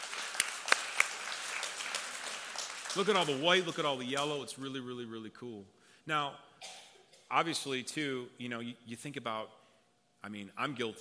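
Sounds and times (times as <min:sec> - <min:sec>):
audience clapping: 0:00.0 - 0:04.4
speech: 0:02.9 - 0:09.6, 0:10.2 - 0:10.9.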